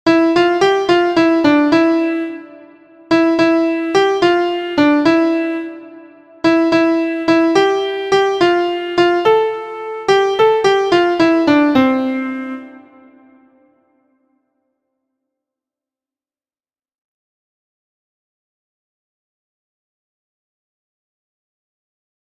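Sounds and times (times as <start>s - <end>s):
MIDI music: 0.0s - 13.7s.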